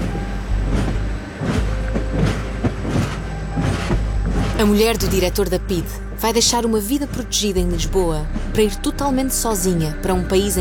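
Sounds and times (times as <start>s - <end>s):
train wheels clacking on track joints: 0.0s - 7.5s
passenger train rolling along the rails: 0.0s - 10.5s
speech: 4.6s - 10.5s.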